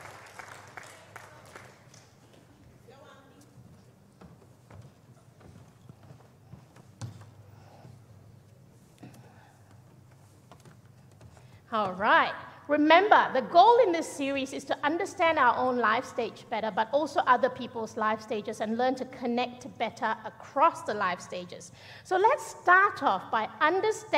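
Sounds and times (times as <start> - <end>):
audience applause welcoming a panel onto a live stage: 0.0 - 2.2
speech: 11.7 - 24.1.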